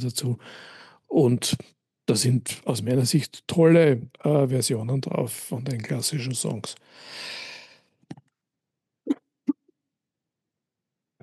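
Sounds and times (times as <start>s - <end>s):
speech: 0.0s - 7.4s
breathy hissing intake of air: 0.4s - 1.0s, 6.8s - 7.8s.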